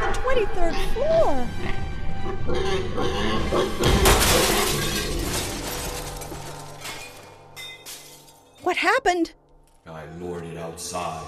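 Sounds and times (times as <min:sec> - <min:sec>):
speech: 0:00.3 - 0:05.3, 0:08.6 - 0:09.4, 0:10.1 - 0:11.2
glass French doors shattering: 0:03.8 - 0:08.7
falling glass shards tinkling: 0:04.2 - 0:08.7.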